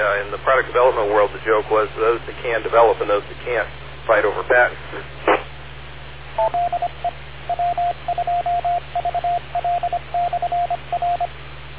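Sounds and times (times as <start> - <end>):
speech: 0.0 - 5.3, 6.4 - 9.1
short clipped two-tone radio transmission beeps: 6.4 - 11.3.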